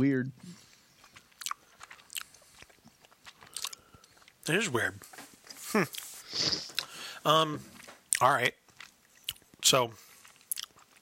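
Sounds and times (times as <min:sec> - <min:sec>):
speech: 0:00.0 - 0:00.6, 0:04.5 - 0:08.6, 0:09.6 - 0:10.0
crunchy chewing on a yumberry-flavored snack: 0:00.4 - 0:04.5, 0:07.7 - 0:10.9.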